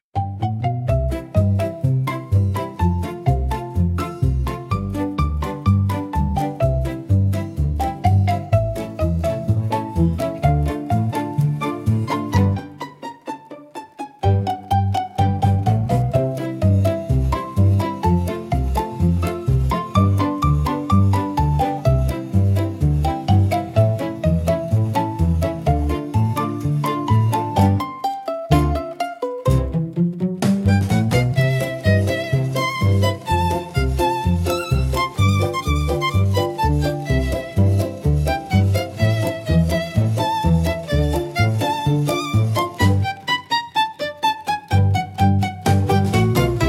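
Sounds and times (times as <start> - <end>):
comical marimba music: 0.2 - 13.5, 14.1 - 43.4, 44.7 - 46.6.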